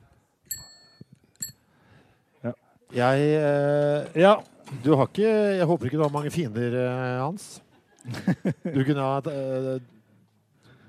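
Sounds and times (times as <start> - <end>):
bell of the speaker's first bicycle ringing: 0.5 - 1.6
speech: 2.4 - 10.0
laughter: 7.6 - 9.2.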